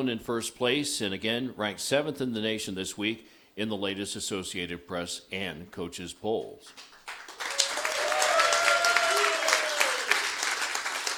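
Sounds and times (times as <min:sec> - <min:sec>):
speech: 0:00.0 - 0:07.2
audience applause: 0:07.1 - 0:11.1.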